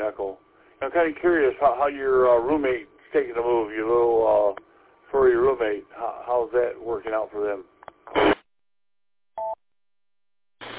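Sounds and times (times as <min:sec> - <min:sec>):
speech: 0:00.0 - 0:08.4
handheld radio scanner running in background: 0:08.0 - 0:08.4.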